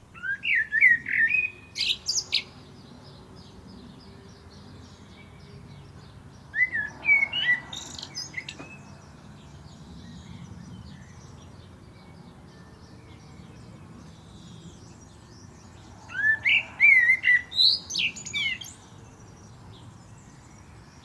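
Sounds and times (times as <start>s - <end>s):
common blackbird song: 0.0s - 21.0s.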